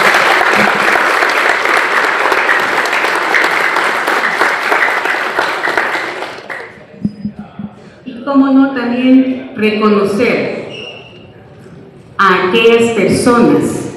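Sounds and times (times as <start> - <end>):
audience applause: 0.0 - 6.8
speech: 8.4 - 10.5, 12.4 - 13.8.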